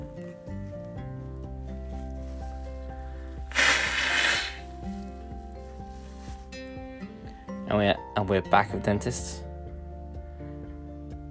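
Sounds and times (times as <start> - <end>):
nose blowing: 3.4 - 4.9
speech: 7.7 - 9.4.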